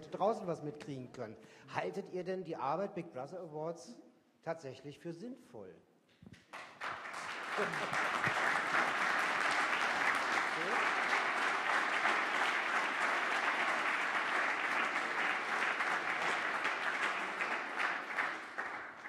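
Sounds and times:
speech: 0:00.1 - 0:06.7, 0:07.6 - 0:08.4
audience applause: 0:06.5 - 0:19.0.

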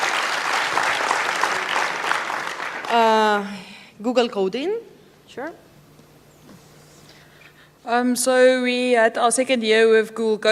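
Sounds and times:
crowd applauding: 0:00.0 - 0:03.2
speech: 0:02.9 - 0:05.7, 0:07.8 - 0:10.5.

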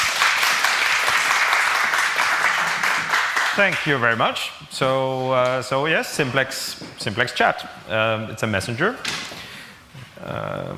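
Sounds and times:
audience applause: 0:00.0 - 0:03.9
speech: 0:03.6 - 0:09.2, 0:10.2 - 0:10.7.

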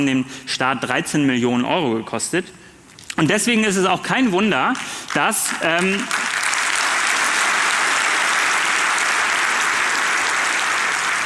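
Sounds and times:
speech: 0:00.0 - 0:02.6, 0:03.2 - 0:06.3
audience applause: 0:04.8 - 0:11.2.

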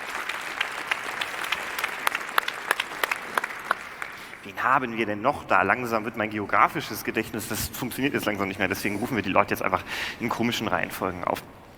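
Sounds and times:
audience applause: 0:00.0 - 0:04.6
speech: 0:04.5 - 0:11.5.

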